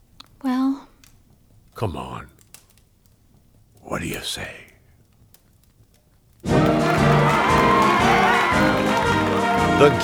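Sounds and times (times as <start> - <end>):
speech: 1.8 - 2.4, 3.9 - 4.6, 9.8 - 10.0
large crowd of supporters cheering and shouting: 6.5 - 10.0.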